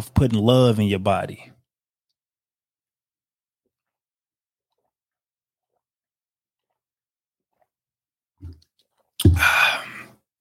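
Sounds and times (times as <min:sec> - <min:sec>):
speech: 0:00.0 - 0:01.6
person drinking water: 0:03.6 - 0:10.2
breathy satisfied exhale: 0:09.3 - 0:10.2.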